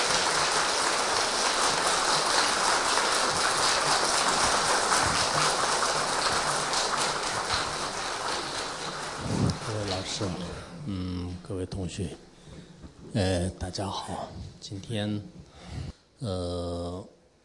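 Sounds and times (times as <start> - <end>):
lecture audience applauding: 0.0 - 10.7
speech: 11.6 - 12.3, 13.2 - 15.4, 16.2 - 17.1.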